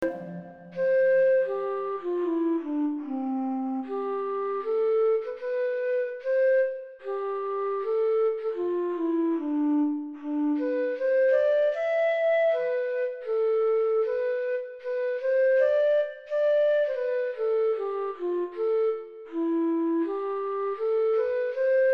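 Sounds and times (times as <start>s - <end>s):
flute: 0.0s - 21.9s.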